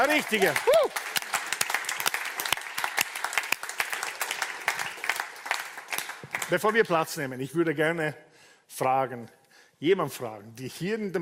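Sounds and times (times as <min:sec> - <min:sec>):
speech: 0:00.0 - 0:01.1, 0:06.5 - 0:11.2
audience applause: 0:00.0 - 0:06.8.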